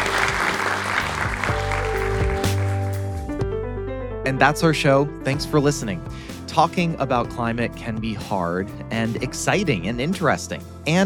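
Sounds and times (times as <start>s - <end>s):
audience applause: 0.0s - 3.1s
speech: 4.3s - 11.0s.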